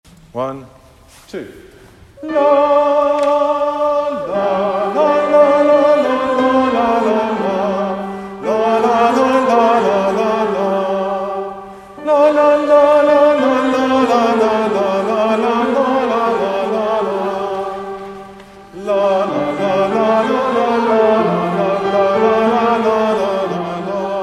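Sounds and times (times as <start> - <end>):
altos singing: 2.1 - 24.2.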